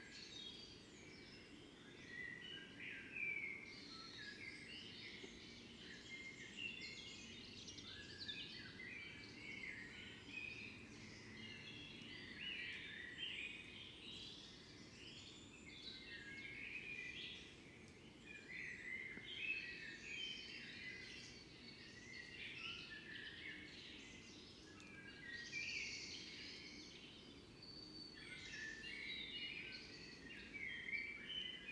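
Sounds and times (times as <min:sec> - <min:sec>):
evening birdsong chorus by a fox den: 0:00.0 - 0:31.7.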